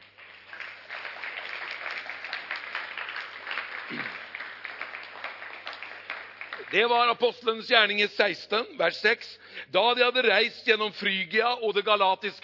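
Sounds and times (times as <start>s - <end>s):
audience applause: 0.0s - 7.4s
speech: 6.7s - 12.4s.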